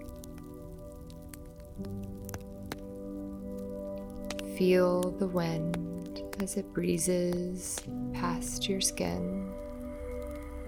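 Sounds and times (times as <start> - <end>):
fire crackling: 0.0 - 10.6
speech: 1.8 - 2.1, 4.6 - 9.6.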